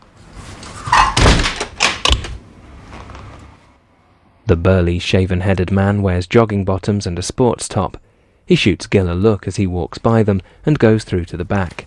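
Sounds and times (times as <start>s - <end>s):
door shutting with a heavy dull thud: 0.9s - 2.4s
speech: 4.5s - 11.8s.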